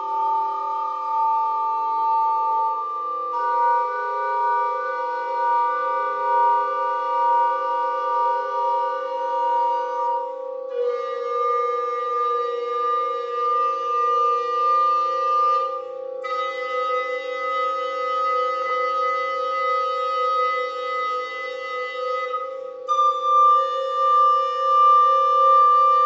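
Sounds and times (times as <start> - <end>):
recorder playing: 0.0 - 26.0.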